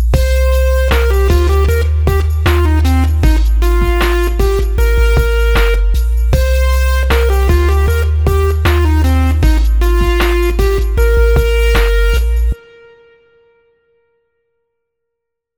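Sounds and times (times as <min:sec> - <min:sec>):
simple melody in C minor: 0:00.2 - 0:13.8.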